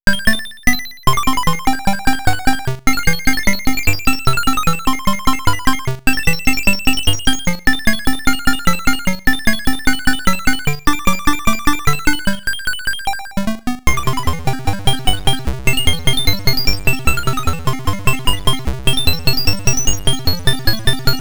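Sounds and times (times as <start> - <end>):
Atari in-game sounds: 0.1 - 21.1.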